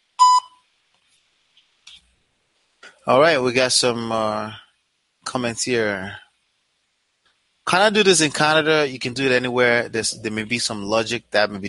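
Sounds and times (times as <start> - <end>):
voicemail beep: 0.2 - 0.6
speech: 3.1 - 4.6, 5.3 - 6.2, 7.7 - 11.6.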